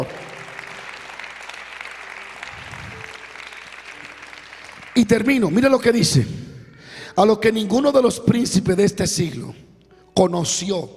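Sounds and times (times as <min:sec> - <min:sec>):
audience applause: 0:00.0 - 0:05.9
speech: 0:05.0 - 0:06.5, 0:07.1 - 0:09.6, 0:10.2 - 0:10.9.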